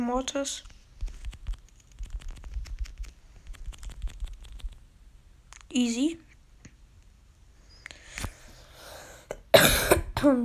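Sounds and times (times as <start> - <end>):
speech: 0.1 - 0.7, 5.7 - 6.3, 9.5 - 10.4
person coughing after choking on own saliva: 9.3 - 10.4.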